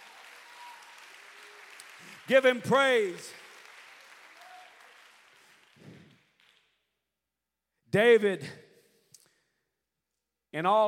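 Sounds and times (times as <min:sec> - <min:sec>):
audience applause: 0:00.0 - 0:06.6
speech: 0:02.0 - 0:03.4, 0:07.9 - 0:08.6, 0:10.5 - 0:10.8.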